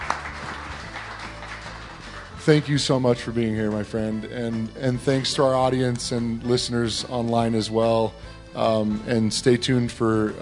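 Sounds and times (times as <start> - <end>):
crowd applause: 0.0 - 2.3
speech: 2.4 - 10.4.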